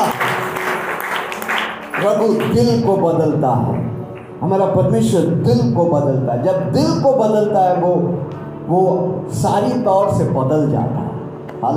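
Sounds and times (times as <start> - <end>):
crowd clapping: 0.0 - 4.4
speech: 2.0 - 11.0, 11.6 - 11.7.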